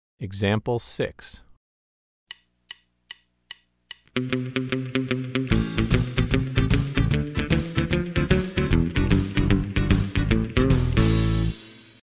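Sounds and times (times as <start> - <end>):
country rock music: 4.2 - 11.9.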